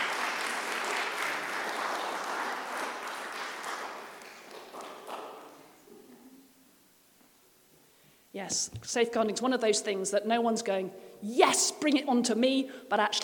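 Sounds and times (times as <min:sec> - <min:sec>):
audience applause: 0:00.0 - 0:05.5
speech: 0:08.4 - 0:13.2.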